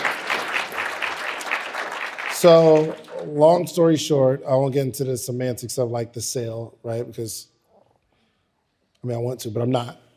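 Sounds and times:
audience applause: 0.0 - 3.5
speech: 2.4 - 7.5, 9.0 - 10.0.

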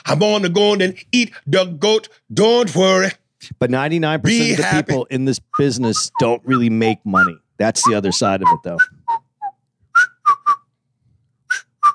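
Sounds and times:
speech: 0.1 - 9.2
person whistling: 5.5 - 10.7, 11.5 - 11.9.

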